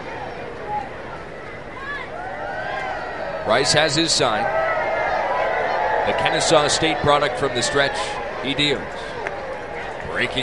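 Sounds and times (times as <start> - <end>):
large stadium crowd cheering during the wave: 0.0 - 10.4
high-pitched shouts and whoops: 1.8 - 8.3
speech: 3.5 - 4.6, 6.1 - 9.1, 10.2 - 10.4.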